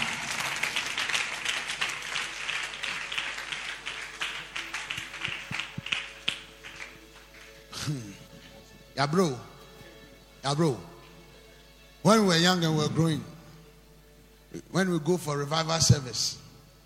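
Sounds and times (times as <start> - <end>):
crowd clapping: 0.0 - 8.3
speech: 9.0 - 9.5, 10.4 - 10.9, 12.0 - 13.3, 14.7 - 16.4.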